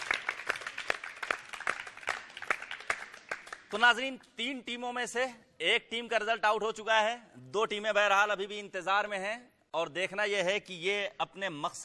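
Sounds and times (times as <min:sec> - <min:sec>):
studio audience applause: 0:00.0 - 0:03.7
speech: 0:03.7 - 0:11.8.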